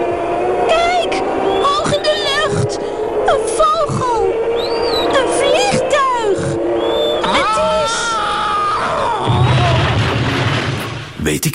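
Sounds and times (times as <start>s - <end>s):
swooping gliding tones of a radio show jingle: 0.0s - 8.3s
deep rumbling boom: 9.2s - 11.4s.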